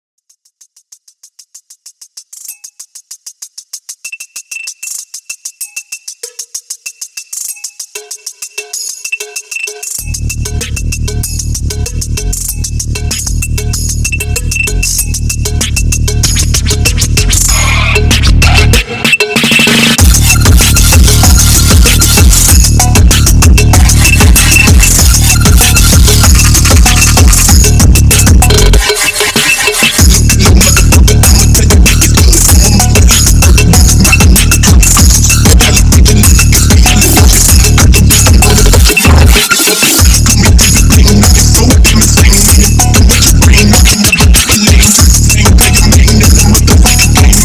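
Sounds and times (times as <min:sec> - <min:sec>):
dubstep phonk music: 0:00.4 - 0:47.4.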